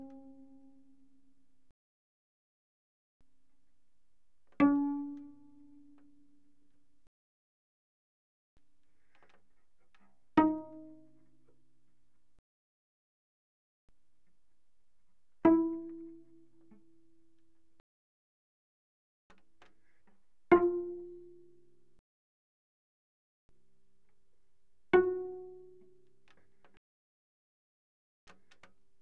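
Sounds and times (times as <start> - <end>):
cello pizzicato on the D string: 4.6 - 6.6, 9.0 - 11.4, 15.4 - 17.6, 19.8 - 21.8, 24.9 - 26.5.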